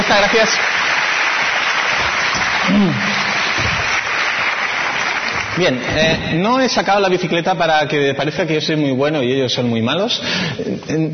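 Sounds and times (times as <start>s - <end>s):
loud applause: 0.0s - 6.9s
speech: 0.1s - 0.8s, 2.6s - 3.1s, 5.6s - 11.1s.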